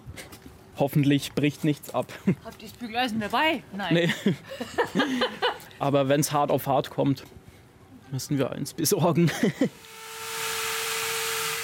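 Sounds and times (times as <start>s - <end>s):
speech: 0.8s - 7.4s, 8.1s - 10.0s
laughter: 4.0s - 5.8s, 9.1s - 9.7s
milling cutter carving a block of ice at a winter festival in a city park: 9.7s - 11.6s.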